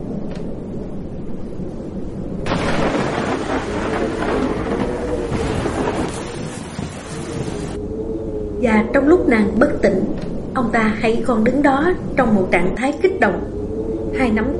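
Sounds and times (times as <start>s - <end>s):
thunder rolling: 0.0s - 14.5s
heavy rain in a thunderstorm: 2.4s - 7.8s
speech: 8.7s - 13.6s, 14.2s - 14.5s.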